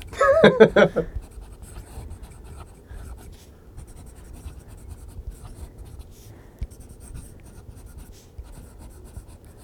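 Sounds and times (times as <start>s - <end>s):
laughter: 0.2s - 1.2s
pen scratching across paper in ASMR style: 1.2s - 9.6s.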